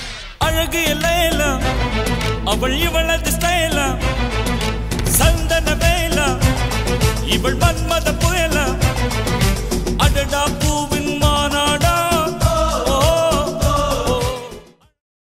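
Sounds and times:
song: 0.4 - 14.8.

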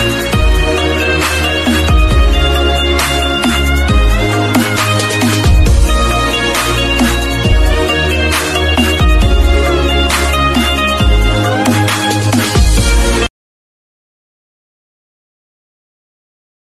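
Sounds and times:
remix ringtone: 0.0 - 13.3.

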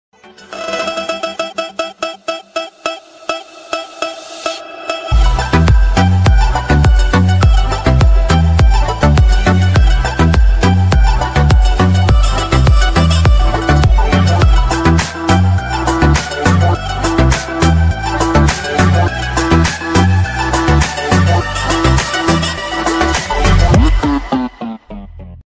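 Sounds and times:
instrumental car background music ringtone: 0.4 - 24.5.

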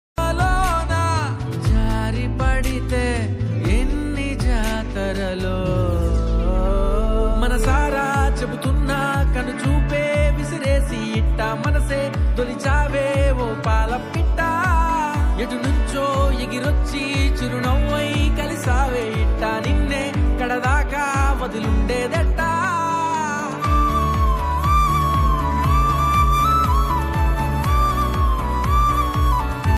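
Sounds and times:
romantic background music: 0.2 - 29.7.

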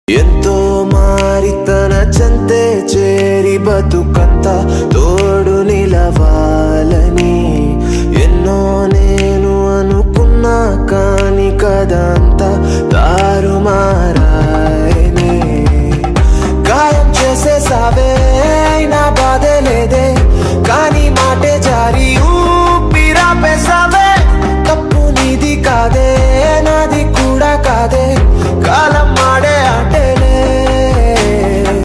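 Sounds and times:
Telugu love songs: 0.1 - 31.8.

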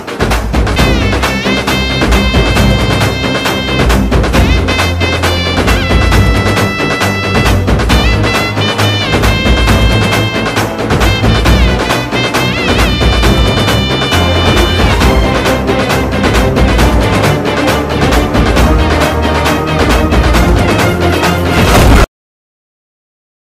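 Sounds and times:
climax background music bass boosted: 0.3 - 22.1.

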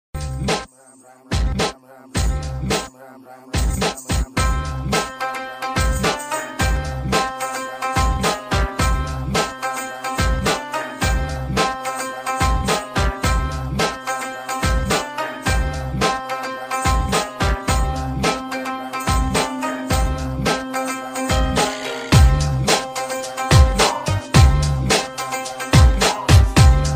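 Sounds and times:
instrumental ringtone background music: 0.2 - 2.9, 3.6 - 26.9.

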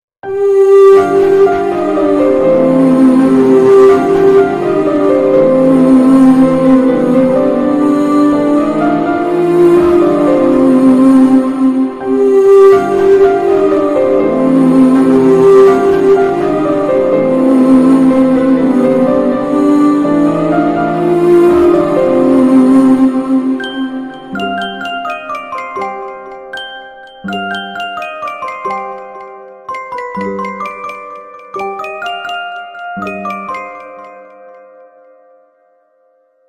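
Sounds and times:
sad background music: 0.2 - 36.4.

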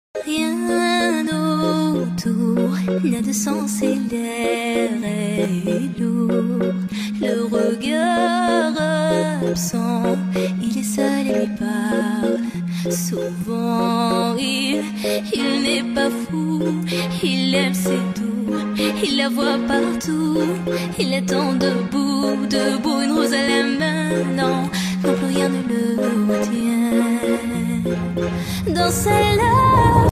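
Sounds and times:
ringtone: 0.2 - 30.0.

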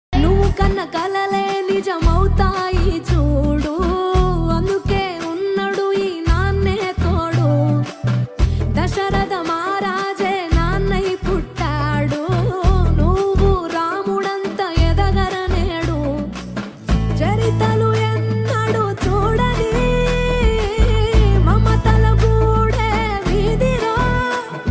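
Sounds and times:
Telugu love song: 0.2 - 24.6.

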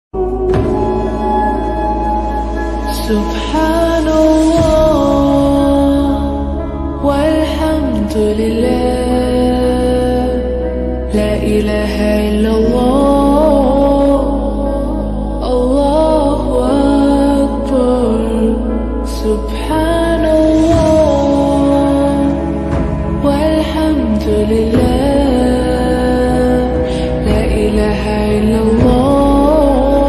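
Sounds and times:
Muslim religious song: 0.2 - 30.0.

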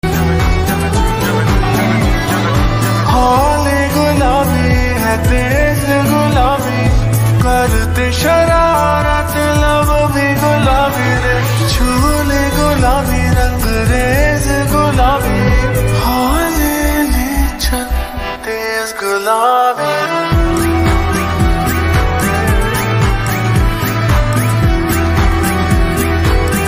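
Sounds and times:
slowed reverb music: 0.0 - 26.6.

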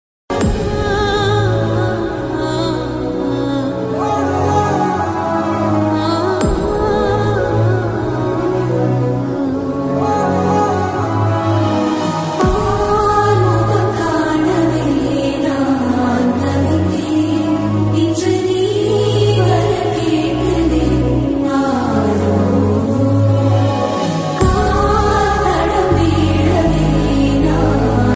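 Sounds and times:
Tamil song: 0.3 - 28.1.

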